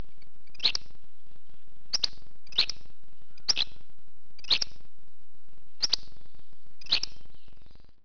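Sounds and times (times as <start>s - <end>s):
flycatcher calling: 0.4s - 0.9s, 1.9s - 2.8s, 3.4s - 3.8s, 4.4s - 4.8s, 5.8s - 6.2s, 6.8s - 7.7s.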